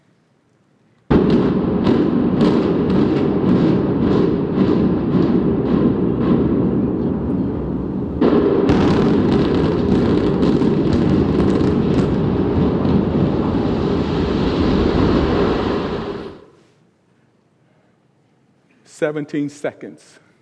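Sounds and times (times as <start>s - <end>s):
building demolition explosion: 1.1s - 16.5s.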